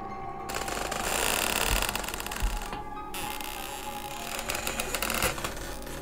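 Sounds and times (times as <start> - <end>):
dry hinges of a wooden door creaking: 0.5 - 6.0.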